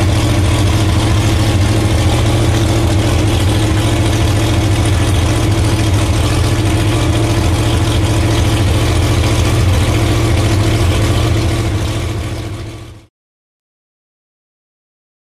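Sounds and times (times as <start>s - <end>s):
drag boat engine idling: 0.0s - 13.1s.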